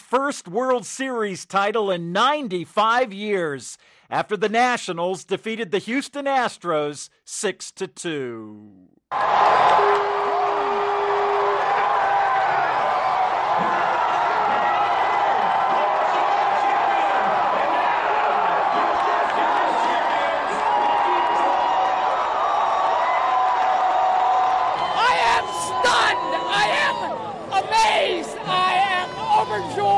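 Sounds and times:
speech: 0.1s - 10.4s
Washington baseball fans cheering the Nationals' World Series title: 9.1s - 29.9s
whoops and shouts: 9.2s - 29.9s.

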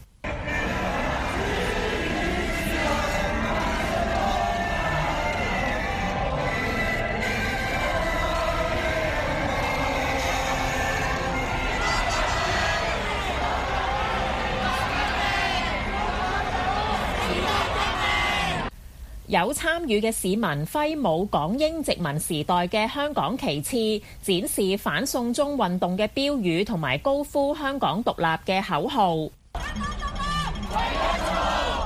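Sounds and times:
large crowd singing together in street: 0.0s - 18.7s, 29.6s - 31.8s
speech: 19.4s - 29.9s.

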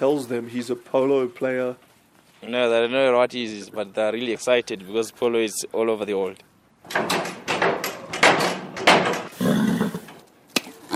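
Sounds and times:
speech: 0.0s - 7.1s
horse kicking a wooden stable door: 6.8s - 9.4s.

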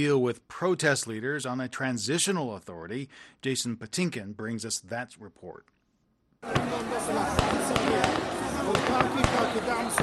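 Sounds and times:
speech: 0.0s - 5.8s, 6.4s - 10.0s
crowd noise and shouting: 6.4s - 10.0s
gunfire at a protest sit-in: 6.5s - 10.0s.

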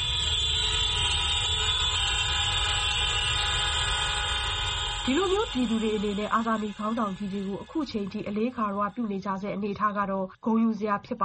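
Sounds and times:
vehicle horns blaring continuously in tribute during a moment of remembrance: 0.0s - 8.9s
speech: 5.0s - 11.2s.

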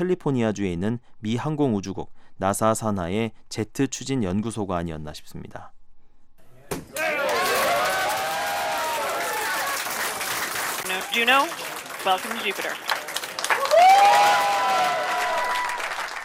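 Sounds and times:
speech: 0.0s - 5.8s, 10.9s - 12.9s
NASA scientists cheering in control room: 6.9s - 11.2s, 13.4s - 16.2s
scientists applauding in control room: 7.0s - 16.2s.

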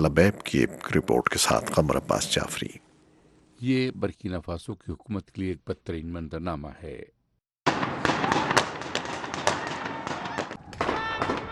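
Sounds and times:
speech: 0.0s - 2.8s, 3.6s - 7.8s
gunfire volley from a simulated attack drill in Burkina Faso's capital: 7.6s - 11.4s.

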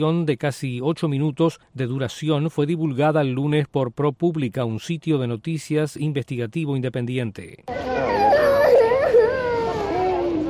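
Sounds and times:
speech: 0.0s - 8.3s
child sobbing and wailing: 7.7s - 10.4s.

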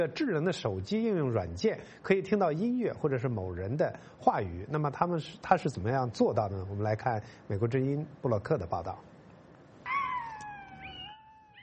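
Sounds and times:
speech: 0.0s - 9.1s
dog howling like a wolf: 9.9s - 11.6s.

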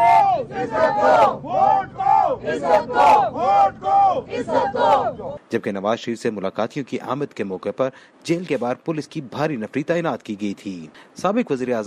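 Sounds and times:
party workers chanting slogans outside Adiala jail: 0.0s - 5.4s
speech: 2.5s - 11.8s.

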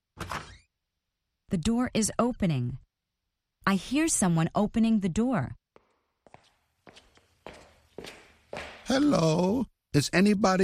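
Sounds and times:
speech: 1.5s - 2.8s, 3.7s - 5.6s, 8.9s - 10.6s
footsteps walking: 5.7s - 9.2s.

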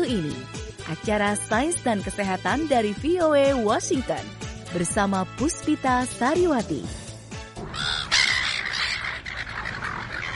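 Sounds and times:
speech: 0.1s - 7.0s
noisy seagull calls: 7.6s - 10.3s.

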